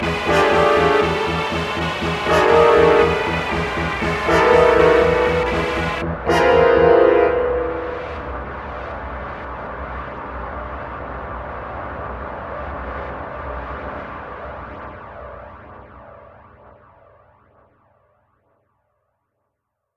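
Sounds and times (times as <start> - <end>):
fight music: 0.0 - 8.8.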